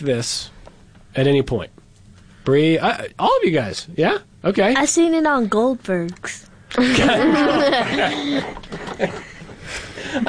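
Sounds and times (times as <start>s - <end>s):
speech: 0.0s - 0.6s, 1.2s - 1.8s, 2.4s - 10.2s
person laughing: 6.8s - 10.2s.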